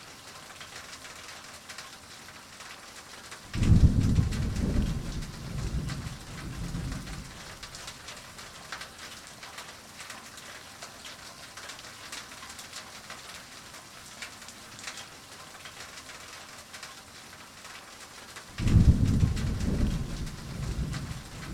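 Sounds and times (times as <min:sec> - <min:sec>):
rain heard indoors: 0:00.0 - 0:21.5
thunder: 0:03.5 - 0:07.9, 0:18.6 - 0:21.5.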